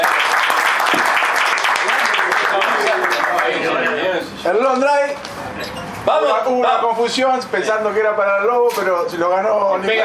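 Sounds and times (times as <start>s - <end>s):
audience applause for a golf prize winner at an awards presentation: 0.0s - 3.9s
speech: 4.5s - 5.4s, 6.0s - 10.0s.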